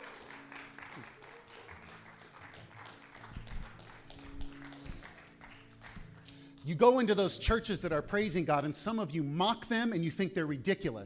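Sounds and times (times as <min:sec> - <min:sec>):
audience clapping hands: 0:00.0 - 0:08.3
speech: 0:06.6 - 0:11.0.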